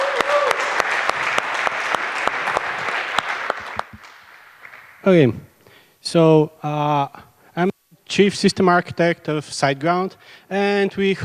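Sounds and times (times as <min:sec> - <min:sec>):
crowd applause: 0:00.0 - 0:05.4
speech: 0:05.0 - 0:11.2.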